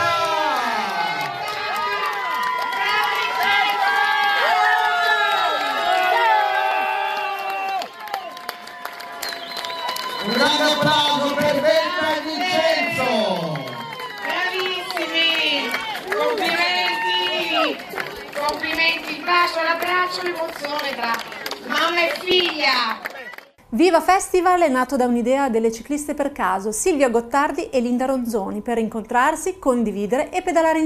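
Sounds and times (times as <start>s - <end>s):
loud whoops and high voices: 0.0s - 17.8s
crowd cheering and shouting at a festival celebration in Trani: 0.0s - 23.4s
speech: 23.8s - 30.8s.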